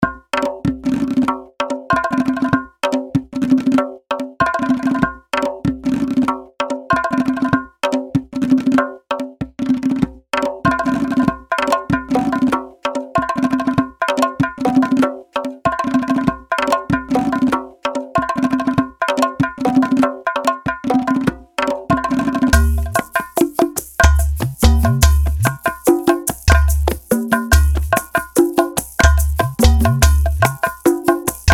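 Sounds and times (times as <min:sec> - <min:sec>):
eastern percussion loop: 0:00.0 - 0:31.5.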